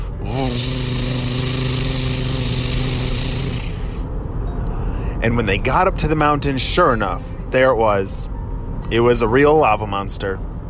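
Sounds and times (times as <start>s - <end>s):
monster truck engines driving: 0.0s - 4.1s
speech: 0.4s - 1.2s, 5.2s - 8.3s, 8.9s - 10.5s.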